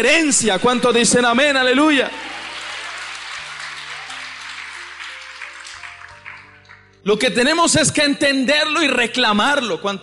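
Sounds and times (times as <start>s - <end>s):
speech: 0.0s - 2.5s, 7.0s - 10.0s
audience applause: 1.8s - 6.8s.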